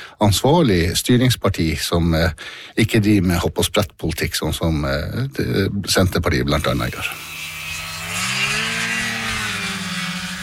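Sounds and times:
speech: 0:00.2 - 0:07.4
snowmobile engine revving: 0:06.6 - 0:10.4.

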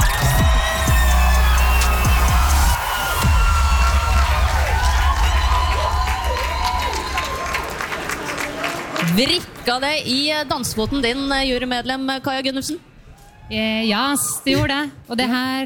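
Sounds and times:
audience applause and cheering: 0:00.0 - 0:09.7
speech: 0:09.2 - 0:12.9, 0:13.5 - 0:15.6.

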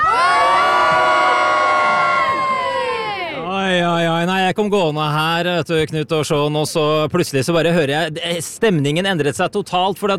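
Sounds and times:
large crowd cheering and shouting at a live public gathering in Norway: 0:00.0 - 0:03.6
speech: 0:04.5 - 0:10.1.

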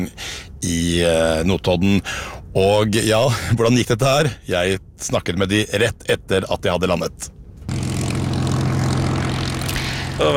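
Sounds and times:
speech: 0:00.0 - 0:07.4, 0:10.2 - 0:10.3
Supermarine Spitfire propeller aircraft engine roar: 0:07.7 - 0:10.3.

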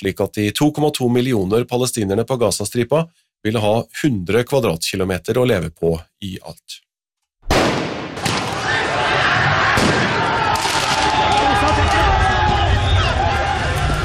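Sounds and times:
speech: 0:00.0 - 0:06.9
sharp bangs at football riots in France: 0:07.5 - 0:09.0, 0:09.7 - 0:11.4
crowd roaring and shouting at football riots in France after PSG's Champions League win: 0:08.2 - 0:14.0.

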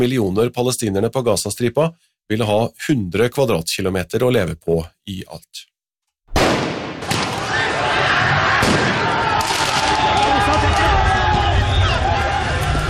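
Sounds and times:
speech: 0:00.0 - 0:06.7
sharp bangs during a football riot in France: 0:06.3 - 0:07.6, 0:08.6 - 0:10.2
crowd shouting in a football riot in France after PSG Champions League win: 0:07.0 - 0:12.8.

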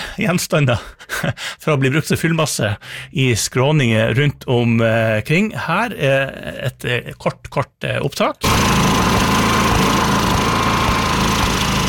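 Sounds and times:
speech: 0:00.2 - 0:08.8
generator engine running: 0:08.4 - 0:11.8.

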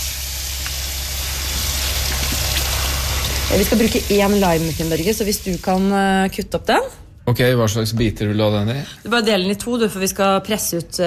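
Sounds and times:
running water pouring over green grapes being rinsed: 0:00.0 - 0:06.0
speech: 0:03.5 - 0:11.0.

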